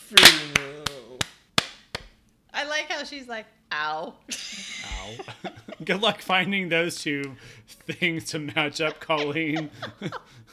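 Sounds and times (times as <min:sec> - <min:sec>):
sharp hand claps: 0:00.0 - 0:02.1
speech: 0:00.1 - 0:00.7, 0:02.8 - 0:10.4
laughter: 0:04.3 - 0:06.7, 0:07.8 - 0:10.5.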